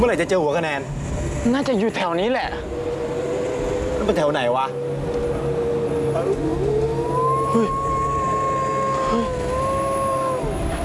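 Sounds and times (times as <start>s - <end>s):
speech: 0.0s - 2.8s, 4.0s - 5.0s, 7.5s - 7.8s
dog howling: 4.7s - 10.8s.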